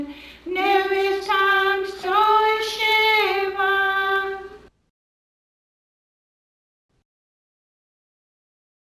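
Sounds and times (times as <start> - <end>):
hymnbook songs in Cheyenne language: 0.0 - 4.7.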